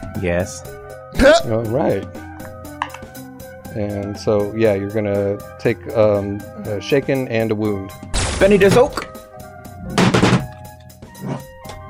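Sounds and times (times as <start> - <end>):
speech: 0.2 - 2.3, 3.7 - 9.1
speaker knocked over: 10.0 - 10.6.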